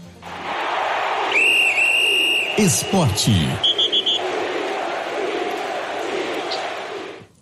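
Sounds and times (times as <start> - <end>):
shrill whistle blast: 1.3 - 4.3
crowd murmur: 2.4 - 7.2
speech: 2.6 - 3.7.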